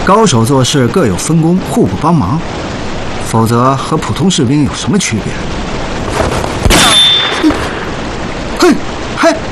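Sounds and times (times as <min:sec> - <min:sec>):
speech: 0:00.1 - 0:02.7, 0:03.3 - 0:05.7, 0:08.7 - 0:09.4
gunshot in a small enclosed space: 0:06.6 - 0:07.7
thin ringing tone: 0:06.8 - 0:07.5.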